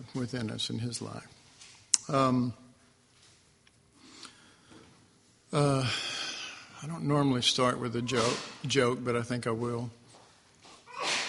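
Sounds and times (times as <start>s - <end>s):
speech: 0.0s - 1.4s, 2.1s - 2.6s, 5.5s - 6.1s, 6.8s - 10.0s
person sneezing: 8.1s - 8.6s, 10.9s - 11.2s.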